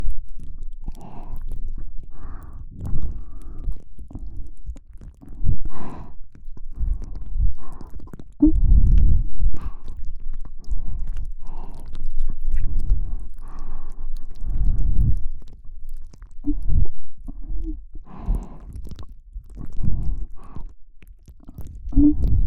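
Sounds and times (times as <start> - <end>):
ASMR ear licking loop in the left ear: 0.0 - 22.4.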